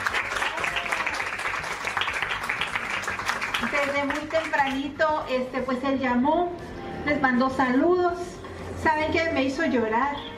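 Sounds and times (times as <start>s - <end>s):
audience applause: 0.0s - 4.7s
speech: 3.8s - 10.3s.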